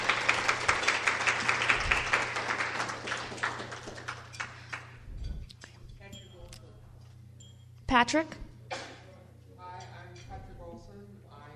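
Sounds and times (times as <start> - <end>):
audience applause: 0.0 - 5.0
low steady hum: 0.0 - 11.5
speech: 7.9 - 8.4.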